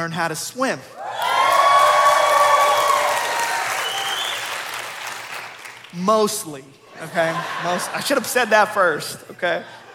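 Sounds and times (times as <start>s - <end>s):
speech: 0.0s - 1.1s, 5.9s - 9.8s
crowd cheering and whooping: 0.9s - 4.9s
crowd applauding: 1.1s - 6.0s
laughter: 6.9s - 9.9s.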